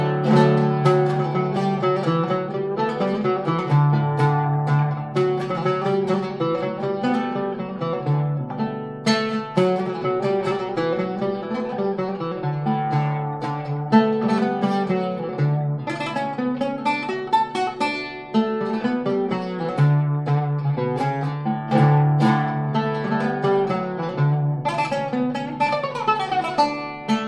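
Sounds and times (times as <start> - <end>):
oud playing a zeybek piece: 0.0 - 27.2.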